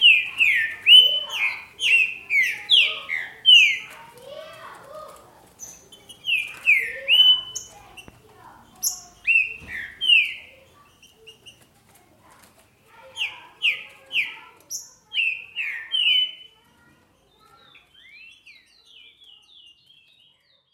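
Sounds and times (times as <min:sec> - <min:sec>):
green-winged saltator song: 0:00.0 - 0:04.0, 0:05.6 - 0:08.1, 0:08.8 - 0:11.6, 0:13.1 - 0:16.6, 0:17.3 - 0:20.7.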